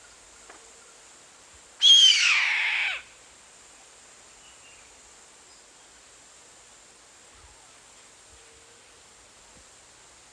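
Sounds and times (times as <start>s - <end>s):
bird screeching: 1.8s - 3.1s.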